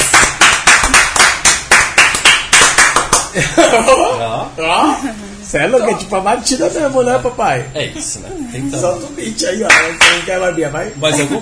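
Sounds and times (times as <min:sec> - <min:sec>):
round of applause: 0:00.0 - 0:03.3
laughter: 0:03.3 - 0:05.2
speech: 0:03.4 - 0:11.4.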